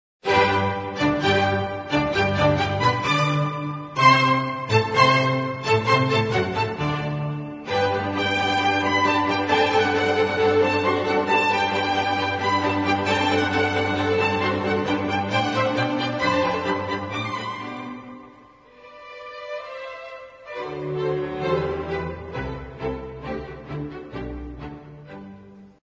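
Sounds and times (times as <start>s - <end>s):
classical piece: 0.2s - 25.8s.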